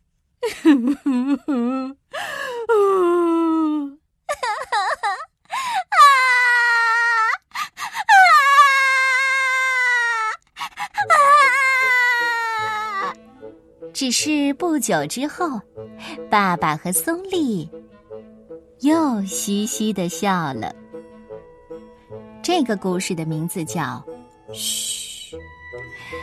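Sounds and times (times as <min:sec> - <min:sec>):
voice acting story characters wailing and sobbing: 0:00.4 - 0:13.2
speech: 0:14.2 - 0:17.8, 0:18.8 - 0:20.8, 0:22.5 - 0:24.8.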